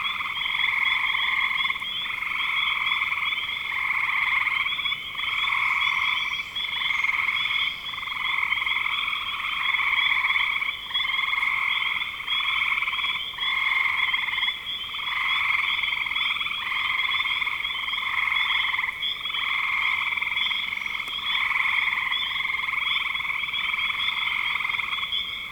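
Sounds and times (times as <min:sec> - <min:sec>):
frog chorus trilling: 0:00.0 - 0:25.4.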